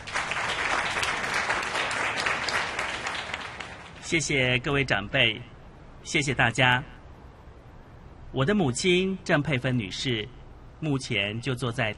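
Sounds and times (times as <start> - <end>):
crowd applauding: 0.0 - 4.0
speech: 4.1 - 7.0, 8.3 - 11.9.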